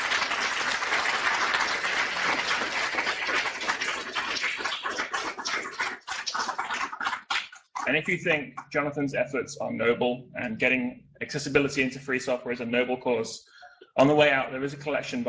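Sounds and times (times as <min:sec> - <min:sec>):
crowd applauding: 0:00.0 - 0:08.0
speech: 0:07.9 - 0:15.2.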